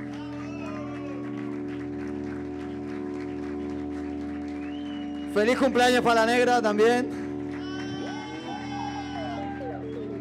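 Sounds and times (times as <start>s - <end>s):
audience applause: 0.0s - 10.2s
speech: 5.4s - 7.3s.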